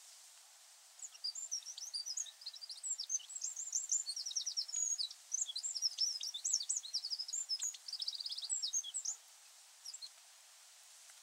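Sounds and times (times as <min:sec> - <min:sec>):
Eurasian wren singing: 0:01.0 - 0:09.2, 0:09.8 - 0:10.1.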